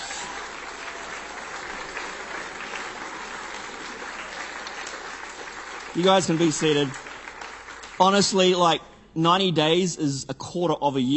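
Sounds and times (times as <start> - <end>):
audience applause: 0.0 - 8.6
speech: 6.0 - 7.0, 8.0 - 11.1.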